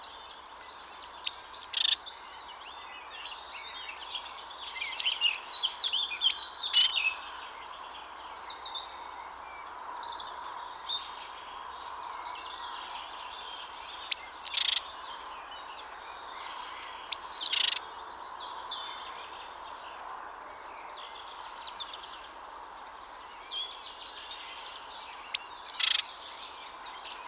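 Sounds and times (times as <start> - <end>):
other birds twittering and chirping: 0.0 - 27.2
great tit calls: 1.2 - 2.0, 5.0 - 5.5, 6.3 - 7.0, 14.0 - 14.9, 16.8 - 17.8, 25.2 - 26.1.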